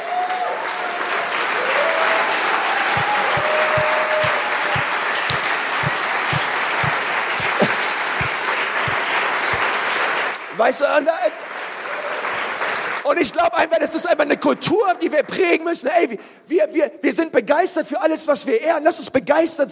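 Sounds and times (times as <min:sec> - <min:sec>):
audience cheering: 0:00.0 - 0:10.4
audience applause: 0:00.0 - 0:13.2
regular low thumping beat: 0:02.9 - 0:09.6
speech: 0:10.6 - 0:11.4, 0:13.1 - 0:19.7.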